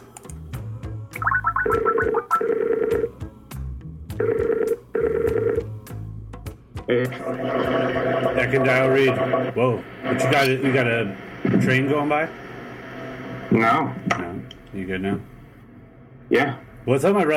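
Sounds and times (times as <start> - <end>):
telephone call ringing out: 1.2 - 3.1, 4.2 - 5.7, 6.9 - 10.7
speech: 7.0 - 12.4, 13.5 - 14.2, 14.8 - 15.3, 16.3 - 17.3.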